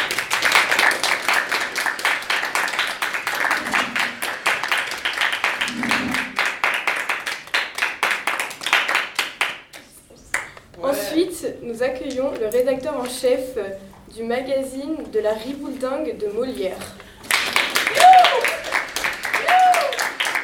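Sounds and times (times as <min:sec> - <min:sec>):
applause: 0:00.0 - 0:10.6, 0:17.2 - 0:20.4
speech: 0:11.7 - 0:17.0.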